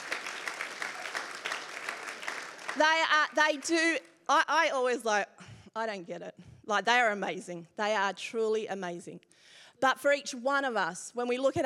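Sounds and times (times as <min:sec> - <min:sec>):
audience clapping for the team: 0:00.0 - 0:03.9
speech: 0:02.8 - 0:11.6.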